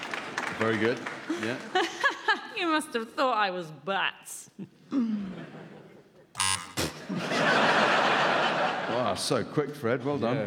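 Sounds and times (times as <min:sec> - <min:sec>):
speech: 0:00.6 - 0:02.0, 0:02.6 - 0:05.2, 0:09.2 - 0:10.4
quiz buzzer: 0:06.4 - 0:07.1
laughter: 0:06.9 - 0:09.4.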